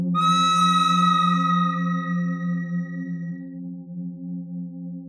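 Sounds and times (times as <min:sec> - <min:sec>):
pentatonic bird melody: 0:00.2 - 0:03.3.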